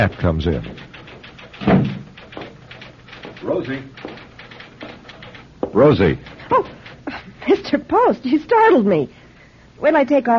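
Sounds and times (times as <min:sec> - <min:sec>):
speech: 0:00.0 - 0:00.9, 0:03.4 - 0:04.1, 0:05.8 - 0:06.7, 0:07.4 - 0:09.2, 0:09.8 - 0:10.3
office door opening: 0:00.7 - 0:07.3.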